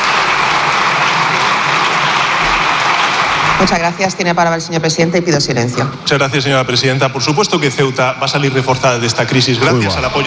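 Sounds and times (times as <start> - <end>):
parliament deputies applauding: 0.0 - 4.3
speech: 3.6 - 10.2.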